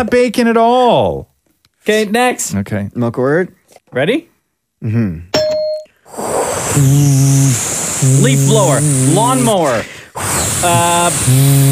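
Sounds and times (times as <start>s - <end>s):
speech: 0.0s - 5.4s, 6.1s - 11.6s
hair dryer blowing: 6.1s - 11.6s.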